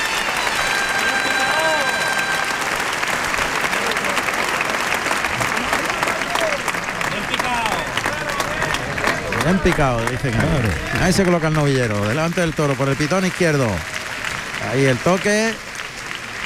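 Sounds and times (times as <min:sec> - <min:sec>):
bullring crowd ovation and applause: 0:00.0 - 0:16.4
speech: 0:09.5 - 0:13.9, 0:14.6 - 0:15.7.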